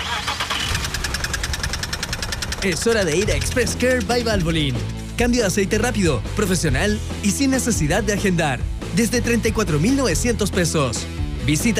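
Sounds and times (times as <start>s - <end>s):
car engine running roughly with knocking clatter: 0.4s - 6.6s
speech: 2.6s - 11.7s.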